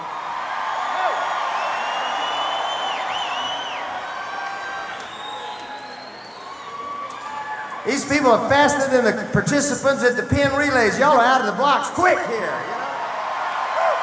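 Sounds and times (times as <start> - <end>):
crowd cheering and whooping: 0.0 - 8.4, 12.8 - 14.0
speech: 7.8 - 12.8.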